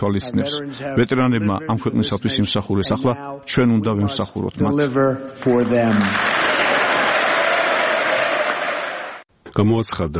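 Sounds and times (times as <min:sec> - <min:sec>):
speech: 0:00.0 - 0:06.5, 0:09.6 - 0:10.1
ovation in the US Congress for President Donald Trump's speech: 0:05.4 - 0:09.3.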